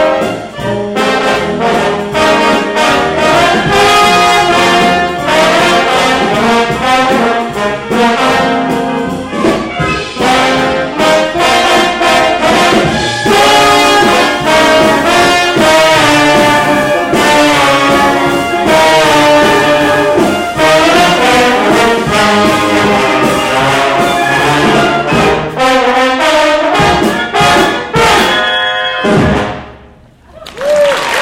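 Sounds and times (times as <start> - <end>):
trombone ragtime music: 0.0 - 29.9.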